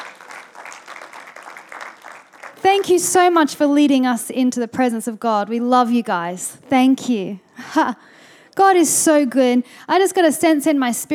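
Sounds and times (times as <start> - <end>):
audience cheering for worship team: 0.0 - 2.7
speech: 2.6 - 11.1.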